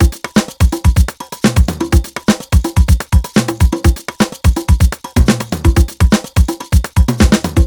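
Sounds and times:
busy nu jazz house beat: 0.0 - 7.6.

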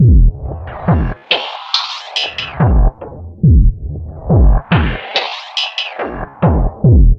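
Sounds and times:
filtered dark trip hop music: 0.0 - 7.1.

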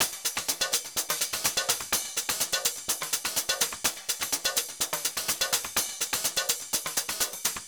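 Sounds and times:
Nova electronic drum beat top layers: 0.0 - 7.6.

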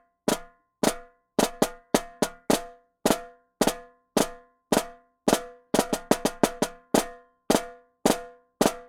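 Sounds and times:
African jungle snare drum: 0.3 - 8.8.

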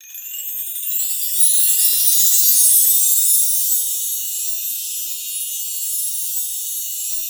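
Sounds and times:
chimes: 0.0 - 7.2.

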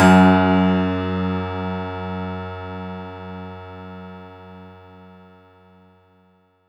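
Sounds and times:
synth note F#2: 0.0 - 2.3.

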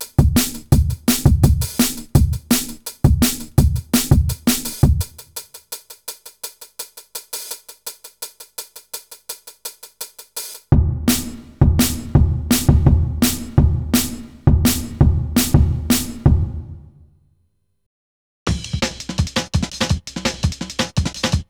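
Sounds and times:
jungle breakbeat music: 0.0 - 5.5, 11.1 - 16.5, 18.5 - 21.4.

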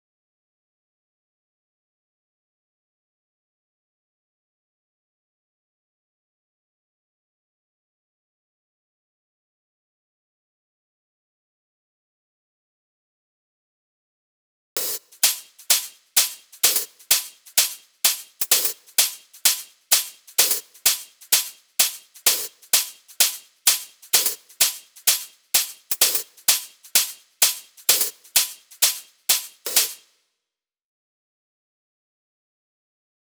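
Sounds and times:
hi-hat pattern at 128 BPM: 14.8 - 30.0.

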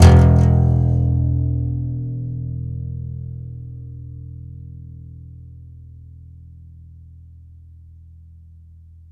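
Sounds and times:
contrabass balalaika plucked: 0.0 - 3.2.

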